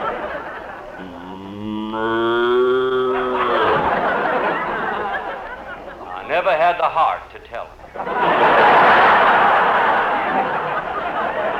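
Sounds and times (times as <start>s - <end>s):
laughter: 0.0s - 6.3s, 7.9s - 11.5s
ridden cow mooing: 1.0s - 4.2s.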